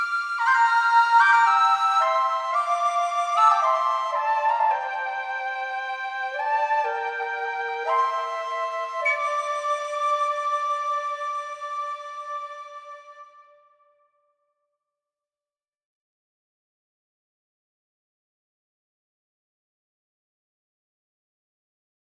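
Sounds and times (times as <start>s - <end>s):
tin whistle playing a calm track: 0.0s - 12.5s.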